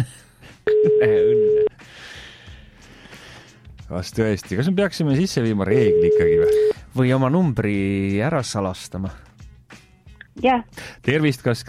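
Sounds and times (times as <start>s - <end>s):
unanswered telephone call ring tone: 0.7s - 1.7s, 5.8s - 6.7s
speech: 0.8s - 1.5s, 3.9s - 9.3s, 10.4s - 11.6s.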